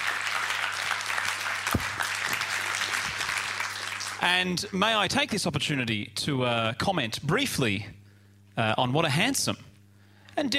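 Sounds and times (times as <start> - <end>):
audience applause: 0.0 - 4.2
speech: 4.2 - 8.0, 8.6 - 9.7, 10.4 - 10.5.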